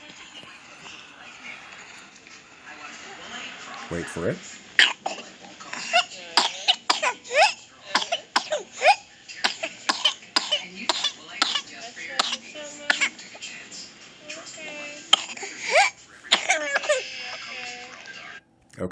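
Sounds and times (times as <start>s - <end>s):
speech: 3.9s - 4.6s
infant with pertussis coughing: 4.8s - 13.4s, 14.6s - 17.9s.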